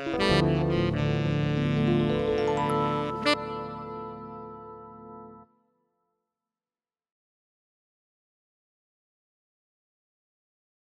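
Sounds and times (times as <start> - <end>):
tenor club sound on an arranger keyboard: 0.1 - 4.7.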